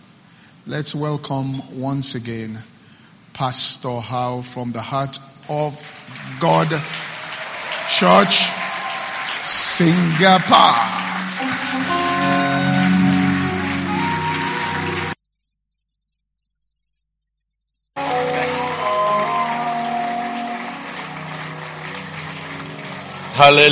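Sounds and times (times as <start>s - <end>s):
speech: 0.6s - 2.8s, 3.4s - 7.1s, 7.9s - 8.6s, 9.4s - 12.0s, 23.4s - 23.6s
audience applause: 5.8s - 15.2s, 18.0s - 23.6s.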